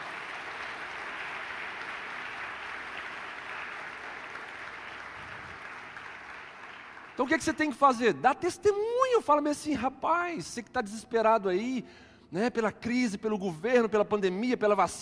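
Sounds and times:
audience applauding: 0:00.0 - 0:07.8
speech: 0:07.2 - 0:15.0.

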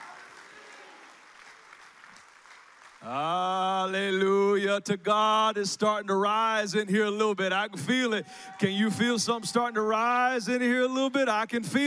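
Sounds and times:
audience clapping hands in praise: 0:00.0 - 0:04.2
speech: 0:03.0 - 0:11.8.

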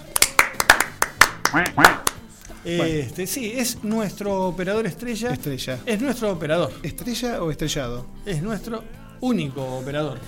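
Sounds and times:
applause: 0:00.0 - 0:02.3
speech: 0:01.5 - 0:02.0, 0:02.6 - 0:10.2.

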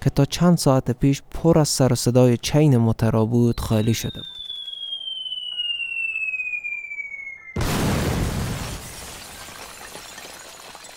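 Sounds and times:
speech: 0:00.0 - 0:04.4
loud rocket explosion: 0:07.6 - 0:09.6.

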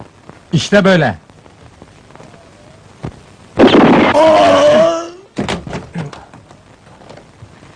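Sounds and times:
speech: 0:00.5 - 0:01.2
gunshot in a comedy film scene: 0:03.6 - 0:04.5.

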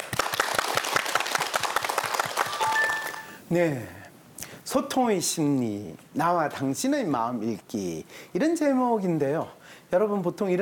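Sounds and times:
audience applause: 0:00.0 - 0:03.3
speech: 0:03.5 - 0:04.0, 0:04.7 - 0:10.6.

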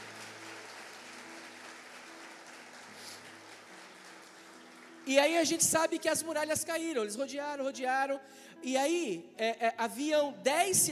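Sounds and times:
audience applause: 0:00.0 - 0:05.1
speech: 0:05.1 - 0:10.9.

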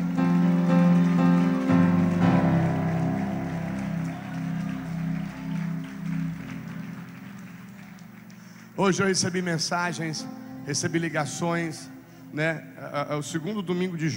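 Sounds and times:
church audience applauding: 0:00.0 - 0:10.3
speech: 0:08.8 - 0:14.1.

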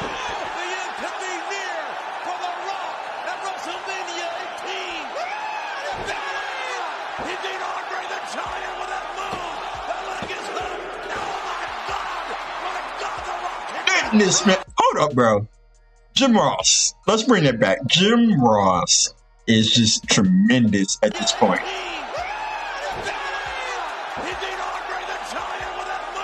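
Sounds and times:
huge wrestling arena crowd roaring and cheering: 0:00.0 - 0:14.8, 0:21.0 - 0:26.2
speech: 0:14.2 - 0:15.6, 0:16.2 - 0:22.0.

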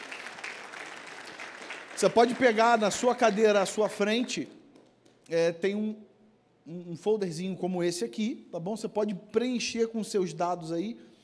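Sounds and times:
audience applauding: 0:00.0 - 0:04.4
speech: 0:02.0 - 0:04.6, 0:05.3 - 0:11.1.

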